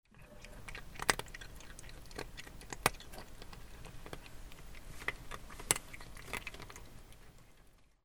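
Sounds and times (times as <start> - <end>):
animals: 0.1 - 8.0.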